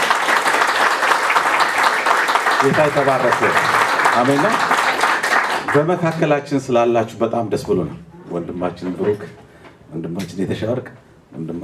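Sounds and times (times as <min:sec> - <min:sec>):
church congregation clapping to welcome guests at a reconciliation gathering: 0:00.0 - 0:06.4
speech: 0:02.6 - 0:04.8, 0:05.7 - 0:11.6.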